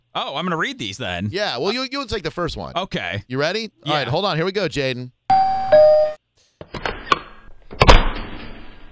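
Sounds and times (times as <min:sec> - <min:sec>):
speech: 0:00.2 - 0:05.9
doorbell chiming: 0:05.3 - 0:06.2.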